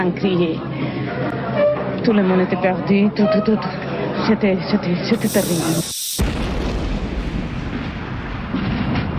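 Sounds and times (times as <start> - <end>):
speech: 0.0 - 6.0
violent explosion: 5.4 - 9.1.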